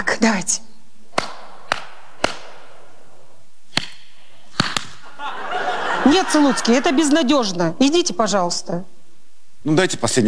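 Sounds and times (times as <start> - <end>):
speech: 0.2 - 0.7, 6.1 - 8.9, 9.6 - 10.2
hand clapping: 1.1 - 2.5, 3.7 - 5.1
laughter: 4.9 - 8.0.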